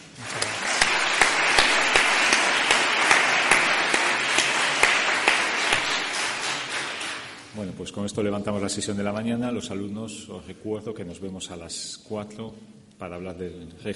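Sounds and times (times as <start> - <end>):
audience applause: 0.0 - 7.5
speech: 7.8 - 13.9.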